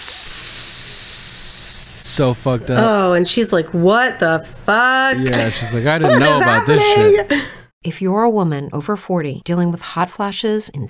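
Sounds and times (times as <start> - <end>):
loud hissing: 0.0 - 2.7
speech: 2.2 - 10.8
laughter: 5.3 - 7.5.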